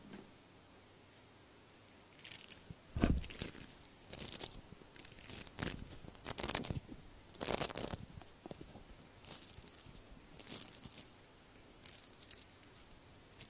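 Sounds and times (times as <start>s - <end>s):
earpick scraping and rubbing to remove earwax: 1.9s - 8.2s, 9.2s - 11.1s.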